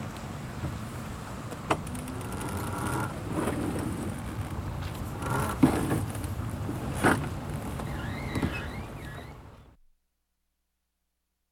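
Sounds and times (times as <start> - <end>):
sport sail being hoisted: 0.2 - 9.7.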